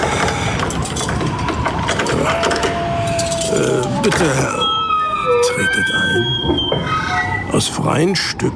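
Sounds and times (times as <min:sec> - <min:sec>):
door lock being unlocked with clicks and ratcheting scrapes: 0:00.2 - 0:04.3
speech: 0:04.0 - 0:04.6, 0:05.8 - 0:08.5.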